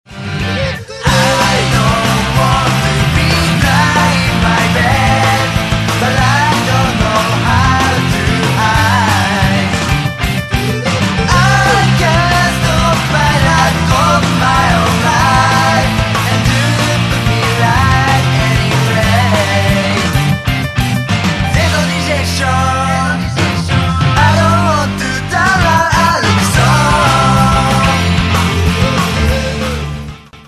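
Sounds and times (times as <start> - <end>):
music: 0.0 - 30.4.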